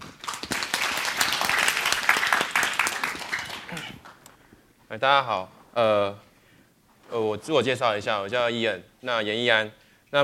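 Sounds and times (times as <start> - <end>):
audience applause welcoming a speaker: 0.0 - 4.2
speech: 5.0 - 6.3, 7.1 - 10.2.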